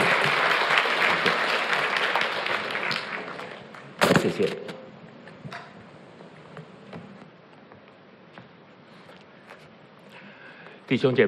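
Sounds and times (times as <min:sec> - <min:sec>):
crowd applause welcoming a church elder at a church gathering: 0:00.0 - 0:04.0
speech: 0:04.2 - 0:04.7, 0:10.9 - 0:11.2.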